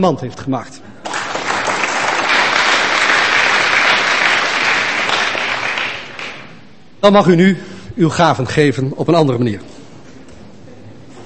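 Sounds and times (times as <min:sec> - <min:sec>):
speech: 0:00.0 - 0:00.8, 0:07.0 - 0:09.7
audience applause: 0:01.0 - 0:06.6.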